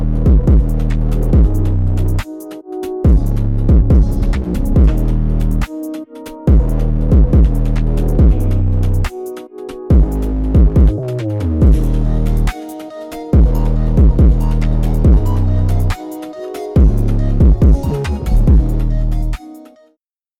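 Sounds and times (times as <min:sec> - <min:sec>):
boosted bass: 0:00.0 - 0:02.2, 0:03.1 - 0:05.7, 0:06.5 - 0:09.1, 0:09.9 - 0:12.5, 0:13.4 - 0:16.0, 0:16.8 - 0:19.4.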